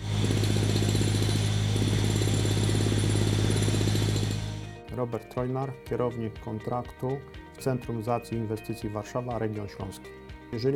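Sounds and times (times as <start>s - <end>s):
rapid mechanical rattling: 0.0s - 4.7s
railway construction site heavy machinery engine drone: 0.0s - 4.8s
speech: 5.0s - 10.7s.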